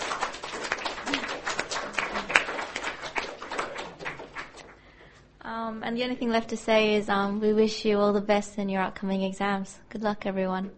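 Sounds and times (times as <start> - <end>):
audience applause: 0.0 - 4.8
speech: 5.7 - 10.7.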